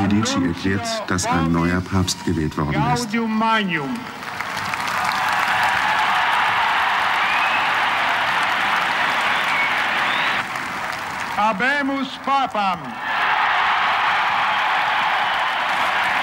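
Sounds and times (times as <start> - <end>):
speech: 0.2 - 4.3, 11.4 - 13.1
large crowd cheering and applauding: 3.8 - 16.2.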